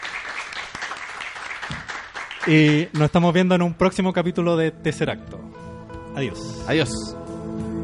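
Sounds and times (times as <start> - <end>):
crowd clapping: 0.0 - 3.4
speech: 2.4 - 5.6, 6.2 - 7.7.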